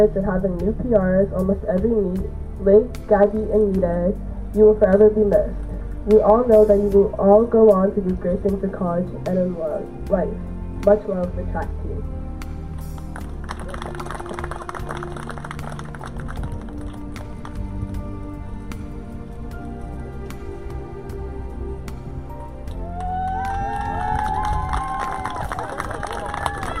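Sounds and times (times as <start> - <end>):
speech: 0.0 - 12.2
crowd applause: 13.0 - 17.6, 22.7 - 26.7
voices cheering with whoops and shouts: 22.7 - 26.7.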